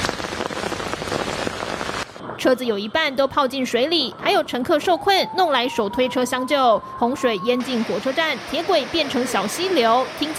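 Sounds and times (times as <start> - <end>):
heavy rainstorm: 0.0 - 2.2, 6.8 - 10.3
speech: 2.4 - 10.3.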